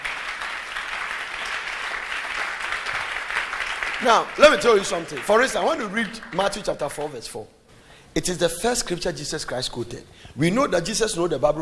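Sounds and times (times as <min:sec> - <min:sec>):
crowd clapping: 0:00.0 - 0:07.4
speech: 0:04.0 - 0:07.6, 0:08.2 - 0:11.5.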